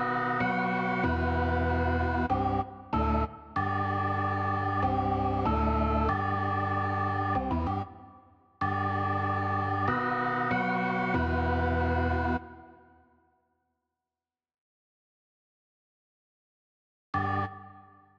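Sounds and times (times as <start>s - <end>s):
organ: 0.0s - 7.9s, 8.6s - 12.6s.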